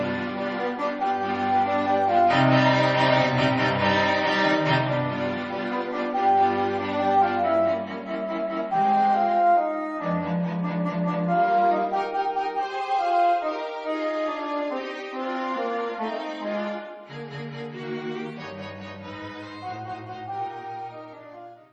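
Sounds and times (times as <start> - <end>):
quartet playing: 0.0 - 16.7.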